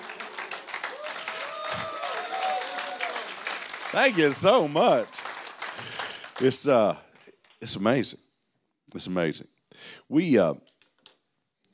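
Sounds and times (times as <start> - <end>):
weak audience clapping: 0.0 - 7.8
speech: 3.9 - 5.2, 6.4 - 8.2, 8.9 - 10.7.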